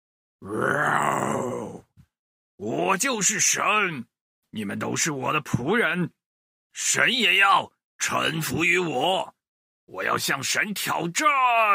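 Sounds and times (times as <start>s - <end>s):
speech: 0.4s - 1.8s, 2.6s - 11.7s
faint grunt: 0.4s - 2.0s
human voice imitating a dinosaur roar: 0.4s - 2.0s.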